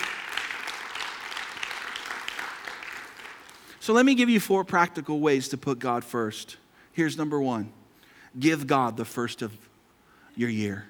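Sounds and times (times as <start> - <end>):
crowd applause in a large room: 0.0 - 3.8
speech: 3.9 - 7.8, 8.4 - 9.7, 10.4 - 10.8.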